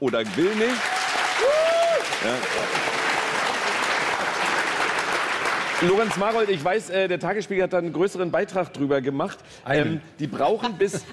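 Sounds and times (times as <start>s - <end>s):
speech: 0.0s - 3.1s, 5.8s - 11.1s
audience applause: 0.0s - 6.8s.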